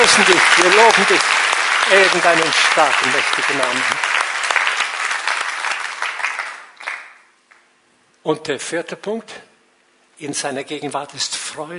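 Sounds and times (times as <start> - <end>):
audience applause: 0.0 - 7.3
speech: 0.2 - 4.2, 8.2 - 9.5, 10.2 - 11.7.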